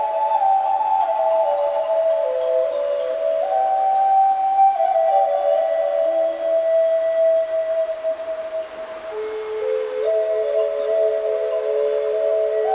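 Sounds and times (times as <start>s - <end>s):
flute music in a bamboo forest: 0.0s - 12.7s.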